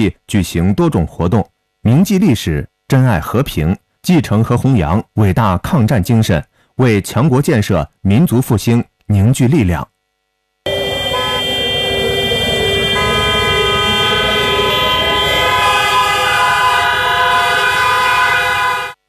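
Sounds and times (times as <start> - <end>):
speech: 0.0 - 9.9
traffic rumble: 10.7 - 18.6
air raid siren over the city: 10.7 - 19.0
horn-like blasts: 10.7 - 19.0.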